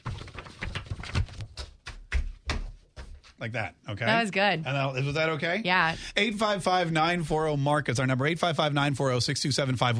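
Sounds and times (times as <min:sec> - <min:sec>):
ruffling blank sheets of paper: 0:00.0 - 0:01.9
speech: 0:03.4 - 0:09.9.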